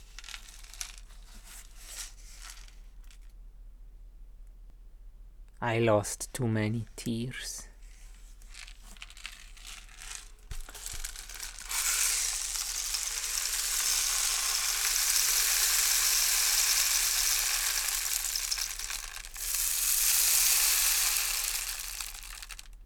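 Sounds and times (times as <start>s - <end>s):
rainstick grains pattering: 0.0s - 3.2s, 8.4s - 22.8s
speech: 5.6s - 7.7s.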